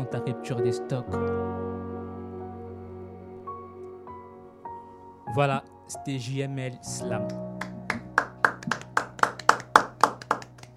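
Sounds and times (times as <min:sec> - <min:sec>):
speech: 0:00.0 - 0:01.7, 0:05.3 - 0:07.5
applause in the studio: 0:07.3 - 0:10.7.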